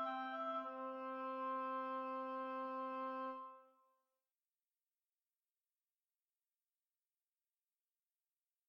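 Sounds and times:
two oboes playing a study: 0:00.0 - 0:03.7.

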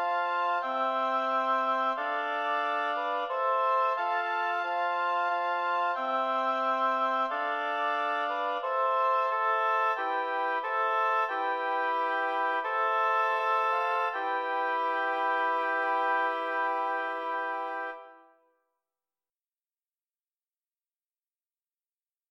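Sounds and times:
oboe quartet playing: 0:00.0 - 0:18.3.

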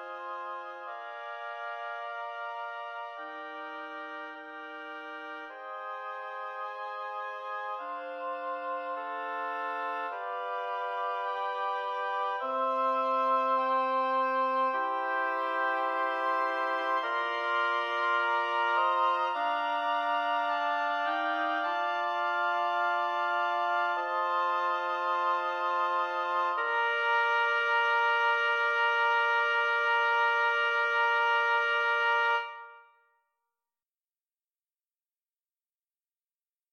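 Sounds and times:
oboe quartet playing: 0:00.0 - 0:32.9.

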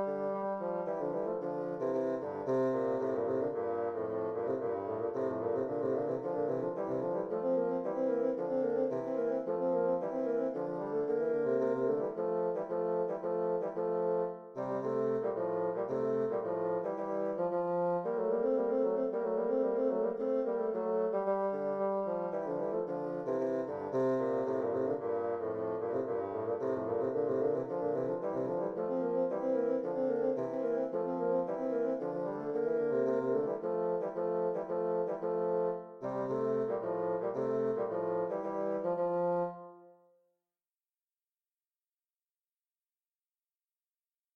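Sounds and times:
bassoon duet playing an allemande: 0:00.0 - 0:40.0.

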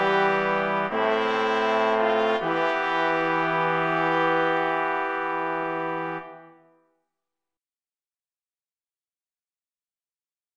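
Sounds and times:
trombone: 0:00.0 - 0:06.7
two trumpets: 0:00.0 - 0:06.8
horn: 0:00.0 - 0:06.9.

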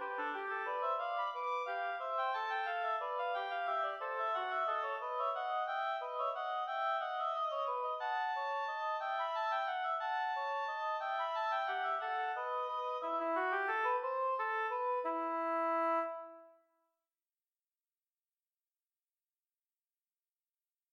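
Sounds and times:
two oboes playing a duet: 0:00.0 - 0:16.5.

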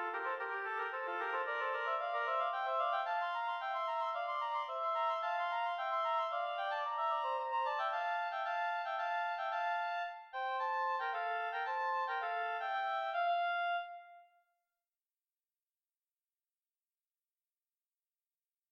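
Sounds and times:
oboe duet playing an allemande: 0:00.0 - 0:14.3.

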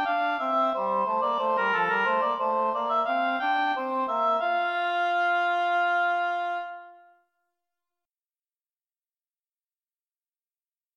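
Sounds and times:
English horn playing a passepied: 0:00.0 - 0:07.2
oboe playing a passepied: 0:00.0 - 0:07.2.

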